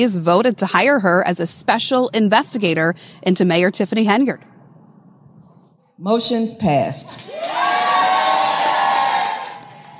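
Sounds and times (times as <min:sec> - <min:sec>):
speech: 0:00.0 - 0:04.5, 0:06.0 - 0:07.6
crowd cheering at meeting: 0:07.2 - 0:09.9.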